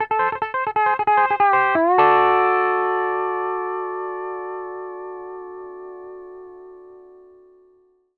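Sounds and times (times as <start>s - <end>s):
country music loop at 140 BPM: 0.0s - 6.0s.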